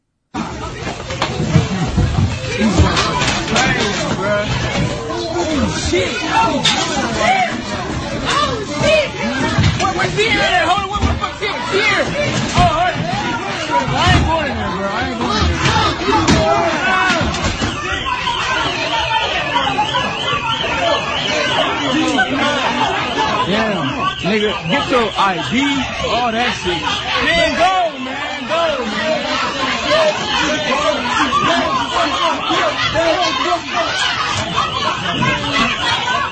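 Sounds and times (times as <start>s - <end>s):
crowd shouting during a melee: 0.4s - 36.3s
laughter: 0.6s - 10.7s, 11.4s - 36.3s
speech: 24.2s - 27.8s.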